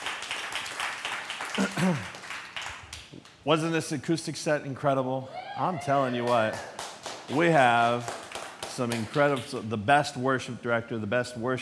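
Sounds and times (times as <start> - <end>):
audience applause: 0.0 - 2.8, 6.1 - 9.5
speech: 1.6 - 2.2, 3.4 - 6.7, 7.3 - 8.2, 8.8 - 11.6
person cheering: 5.2 - 6.6.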